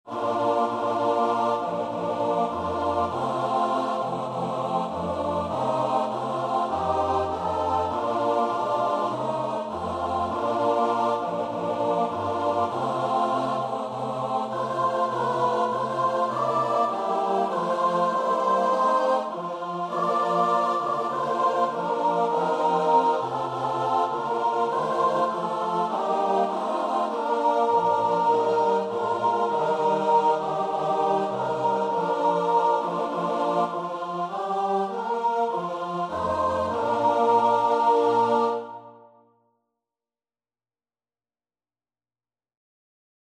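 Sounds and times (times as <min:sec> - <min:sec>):
choir singing: 0:00.0 - 0:39.2.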